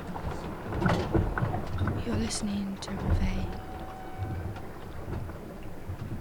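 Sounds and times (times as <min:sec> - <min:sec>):
Arctic underwater hydrophone rumbling and washing noise: 0:00.0 - 0:06.1
crackles and soft thumps: 0:00.0 - 0:06.1
speech: 0:02.1 - 0:03.7
faint high whistle-like tone: 0:03.6 - 0:04.4.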